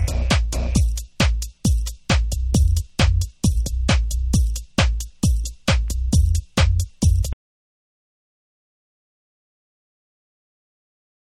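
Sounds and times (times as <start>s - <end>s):
instrumental music: 0.0s - 7.4s.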